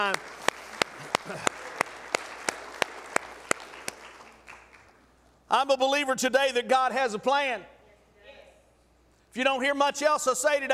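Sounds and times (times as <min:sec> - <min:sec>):
speech: 0:00.0 - 0:00.4, 0:01.3 - 0:01.6, 0:05.5 - 0:07.7, 0:09.3 - 0:10.7
audience hand clapping: 0:00.0 - 0:05.0.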